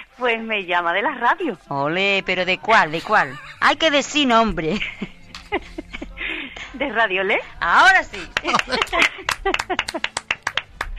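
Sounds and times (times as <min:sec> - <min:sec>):
speech: 0:00.2 - 0:05.7, 0:06.8 - 0:10.2
laughter: 0:02.9 - 0:04.0, 0:04.6 - 0:07.1, 0:07.9 - 0:10.5
hand clapping for a caller on a live radio show: 0:08.1 - 0:10.9.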